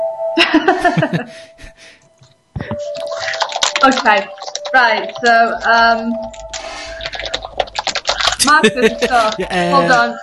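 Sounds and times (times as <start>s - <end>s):
speech: 0.4s - 1.5s, 3.8s - 6.4s, 8.4s - 10.2s
laughter: 0.4s - 1.9s, 8.1s - 10.2s
typing on a computer keyboard: 2.7s - 9.5s.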